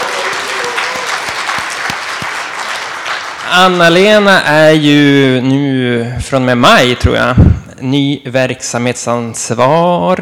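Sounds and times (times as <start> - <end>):
audience applause: 0.0 - 3.8
speech: 3.5 - 10.2.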